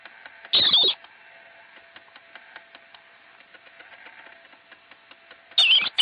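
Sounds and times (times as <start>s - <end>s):
marmot scream: 0.5s - 1.0s, 5.6s - 6.0s.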